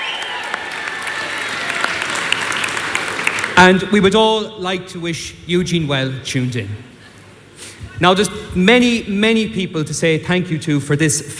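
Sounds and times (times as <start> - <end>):
audience round of applause: 0.0 - 3.7
speech: 3.6 - 6.9, 8.0 - 11.3.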